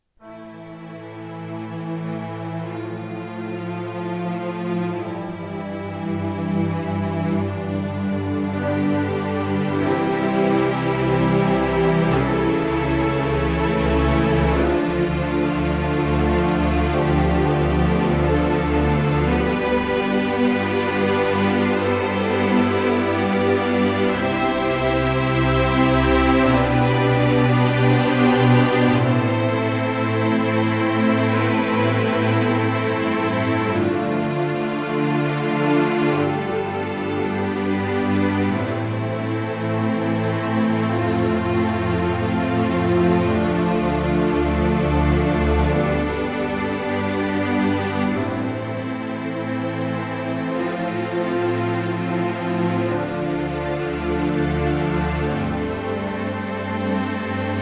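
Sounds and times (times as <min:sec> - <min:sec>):
emotional dramatic background music: 0:00.2 - 0:57.5.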